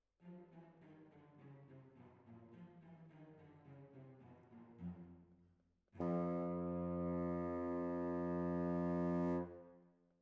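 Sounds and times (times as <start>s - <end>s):
clarinet: 6.0s - 9.9s.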